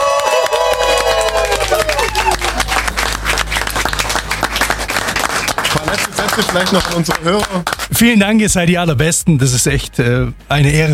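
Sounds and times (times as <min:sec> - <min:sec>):
newsroom staff cheering and whooping: 0:00.0 - 0:03.0
newsroom staff clapping: 0:00.0 - 0:07.9
speech: 0:06.4 - 0:10.9.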